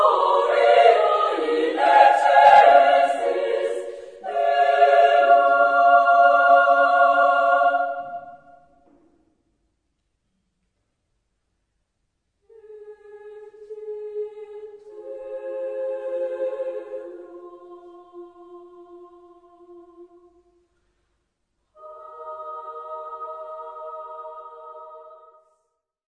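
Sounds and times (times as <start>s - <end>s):
chorus singing a mass for three voices: 0.0s - 8.9s, 12.5s - 20.5s, 21.8s - 25.5s.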